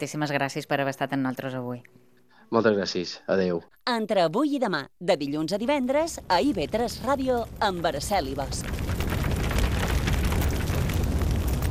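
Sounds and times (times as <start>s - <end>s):
speech: 0.0s - 8.8s
forest fire burning: 5.7s - 11.7s.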